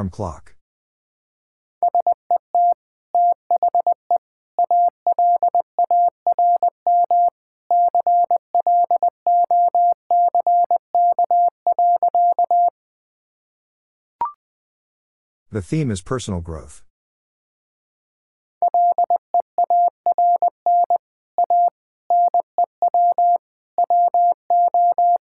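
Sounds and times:
speech: 0.0 - 0.5, 15.5 - 16.9
Morse code beeps: 1.9 - 4.0, 4.6 - 12.7, 18.6 - 25.2.

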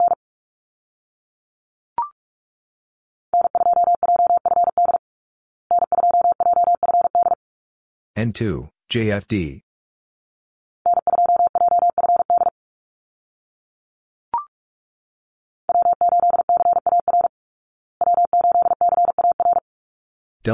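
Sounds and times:
Morse code call signs at 45 wpm: 3.4 - 5.0, 5.7 - 7.4, 10.9 - 12.5, 15.7 - 17.3, 18.0 - 19.6
speech: 8.2 - 9.6.

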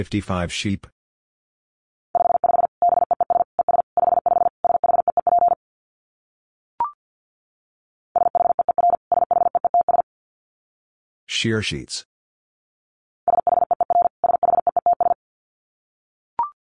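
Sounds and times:
speech: 0.0 - 0.9, 11.4 - 12.1
rapid Morse code beeping at about 50 words per minute: 2.2 - 5.6, 8.2 - 10.0, 13.3 - 15.2.

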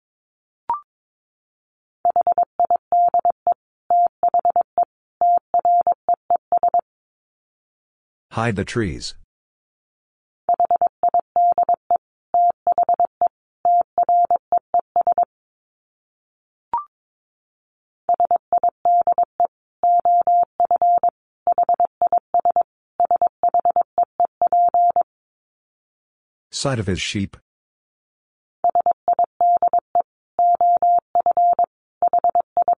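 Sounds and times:
speech: 2.1 - 3.4, 8.4 - 9.2, 26.5 - 27.5
Morse code practice tones at about 22 words per minute: 2.1 - 6.8, 10.5 - 15.3, 18.1 - 25.0, 28.6 - 32.7.

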